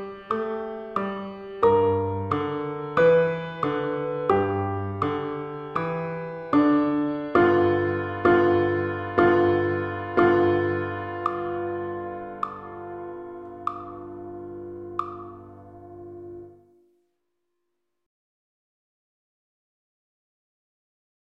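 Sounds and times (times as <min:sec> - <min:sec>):
blues music: 0:00.0 - 0:16.6.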